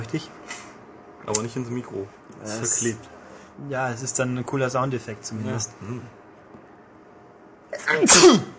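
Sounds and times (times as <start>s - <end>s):
speech: 0.0s - 0.4s, 1.2s - 6.2s, 7.8s - 8.5s
sneeze: 7.7s - 8.5s.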